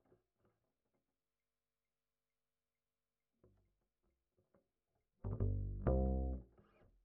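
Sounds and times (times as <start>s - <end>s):
bass line: 5.3s - 6.4s.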